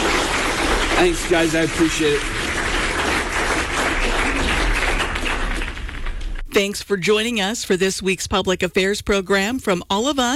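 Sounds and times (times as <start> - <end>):
audience applause: 0.0 - 6.4
speech: 1.0 - 2.4, 6.6 - 10.3.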